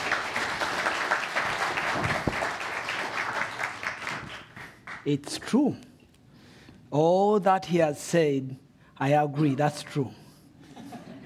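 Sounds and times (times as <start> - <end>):
audience applause welcoming a visiting pastor: 0.0 - 5.0
speech: 5.0 - 5.9, 6.9 - 10.2
laughter: 10.6 - 11.2.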